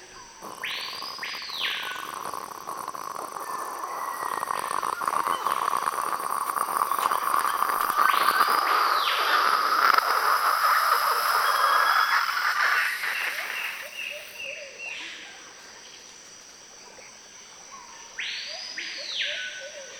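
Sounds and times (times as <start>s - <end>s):
kettle heating up to a boil: 0.4s - 14.4s.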